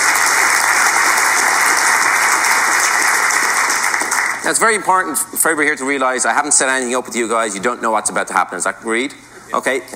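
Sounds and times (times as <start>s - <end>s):
audience applause: 0.0s - 4.6s
speech: 4.4s - 9.9s.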